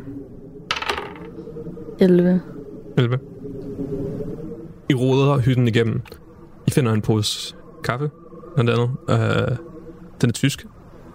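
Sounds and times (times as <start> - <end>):
low hum: 0.0 - 11.1
dice rolling on a table: 0.7 - 1.3
speech: 2.0 - 3.3, 4.9 - 10.8.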